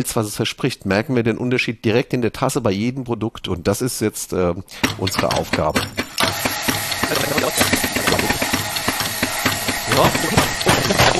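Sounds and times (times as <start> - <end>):
speech: 0.0 - 6.5
GS3 espresso machine brewing without pressure profiling: 6.2 - 11.1.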